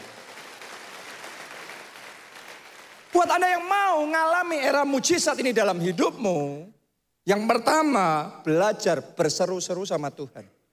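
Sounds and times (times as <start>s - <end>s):
crowd applause: 0.0s - 3.2s
speech: 3.2s - 10.6s.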